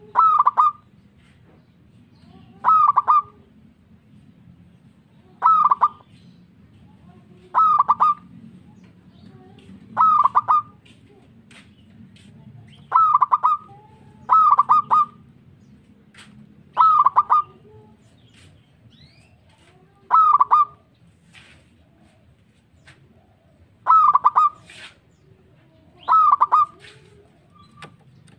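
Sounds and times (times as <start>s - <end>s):
local-type zebra dove cooing: 0.0s - 0.9s, 2.5s - 3.5s, 5.4s - 6.1s, 7.4s - 8.3s, 9.3s - 10.8s, 12.7s - 15.3s, 16.7s - 18.0s, 20.1s - 20.9s, 23.0s - 24.8s, 25.4s - 28.3s.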